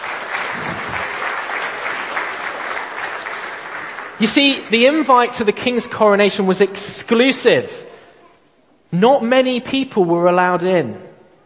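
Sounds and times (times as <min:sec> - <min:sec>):
audience applause: 0:00.0 - 0:04.6
speech: 0:04.2 - 0:07.9, 0:08.9 - 0:11.1.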